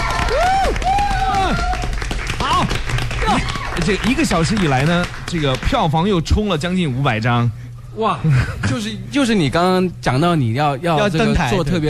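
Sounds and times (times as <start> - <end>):
audience applause: 0.0 - 6.0
speech: 3.9 - 11.8.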